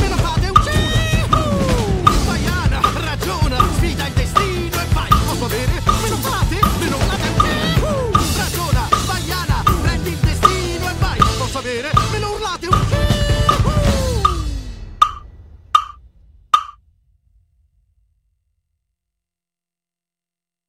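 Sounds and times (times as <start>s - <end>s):
drum kit at 79 BPM in A minor: 0.0s - 16.0s, 16.6s - 16.8s.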